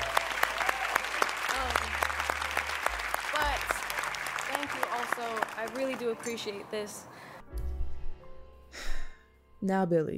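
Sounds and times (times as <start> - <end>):
faint whoops and cheers: 0.0 - 1.9
crowd applauding: 0.0 - 7.0
speech: 5.2 - 7.3, 9.6 - 10.1.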